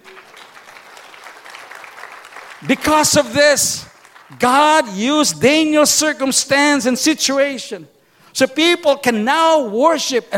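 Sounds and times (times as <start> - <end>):
church congregation clapping together: 0.0 - 5.7
speech: 2.6 - 10.3.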